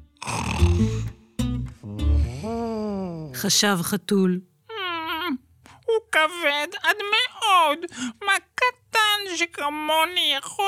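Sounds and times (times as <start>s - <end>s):
voice imitating a sleeping elephant snoring: 0.2s - 1.2s, 1.9s - 3.4s
speech: 0.6s - 1.2s, 3.4s - 4.5s, 6.2s - 10.6s.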